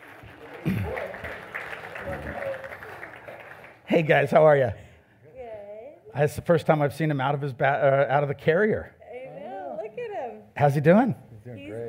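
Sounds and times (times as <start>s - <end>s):
crowd clapping: 0.0s - 4.4s
speech: 0.6s - 1.0s, 3.9s - 4.9s, 6.2s - 9.0s, 10.6s - 11.8s.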